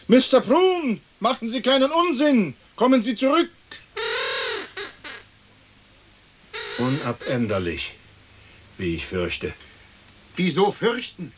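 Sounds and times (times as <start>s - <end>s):
speech: 0.1s - 3.8s, 6.8s - 8.0s, 8.8s - 9.6s, 10.4s - 11.3s
crow cawing: 4.0s - 5.4s, 6.5s - 7.7s.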